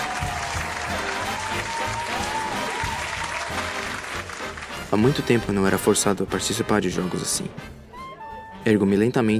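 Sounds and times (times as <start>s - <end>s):
audience applause: 0.0s - 5.7s
speech: 4.9s - 7.8s, 8.6s - 9.3s.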